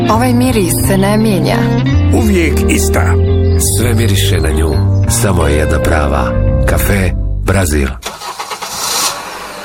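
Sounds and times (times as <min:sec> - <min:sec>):
speech: 0:00.1 - 0:08.1
car engine starting: 0:08.0 - 0:09.6.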